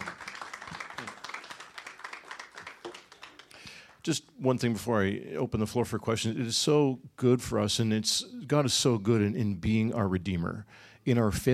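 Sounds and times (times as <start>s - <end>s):
audience applause: 0.0s - 4.0s
speech: 4.0s - 11.5s.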